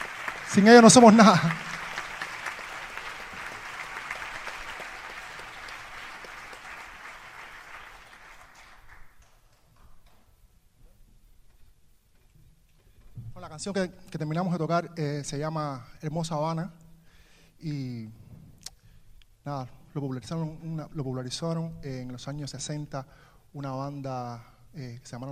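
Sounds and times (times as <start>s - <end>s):
audience applause at concert: 0.0s - 10.2s
speech: 0.5s - 1.7s, 13.6s - 16.8s, 17.6s - 18.2s, 19.4s - 25.2s.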